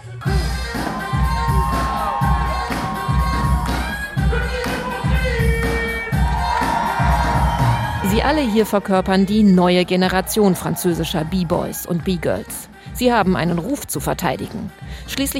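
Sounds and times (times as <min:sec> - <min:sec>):
crowd cheering in a hall at a breakdance event: 0:00.7 - 0:12.0
speech: 0:08.2 - 0:15.3.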